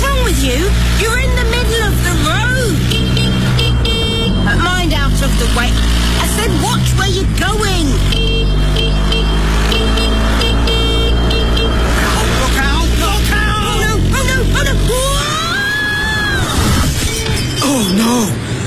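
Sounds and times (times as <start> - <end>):
blaring horns: 0.0 - 15.4
motor engine droning: 0.0 - 18.6
people shouting: 11.2 - 16.7.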